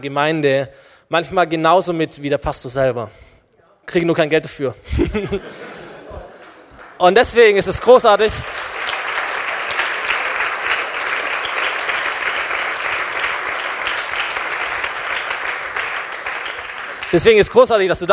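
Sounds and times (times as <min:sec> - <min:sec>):
speech: 0:00.0 - 0:03.3, 0:03.9 - 0:05.7, 0:07.0 - 0:08.7, 0:17.1 - 0:18.1
laughter: 0:04.8 - 0:08.7
audience applause: 0:05.5 - 0:18.1.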